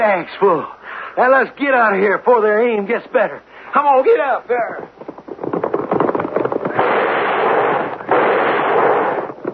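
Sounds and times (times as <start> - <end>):
speech: 0.0 - 5.1
dramatized explosion of the Union Bank being blown up, radio drama effect: 6.6 - 9.4.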